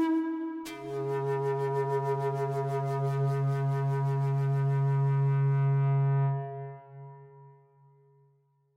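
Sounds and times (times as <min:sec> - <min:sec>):
Native American flute playing: 0:00.0 - 0:06.7.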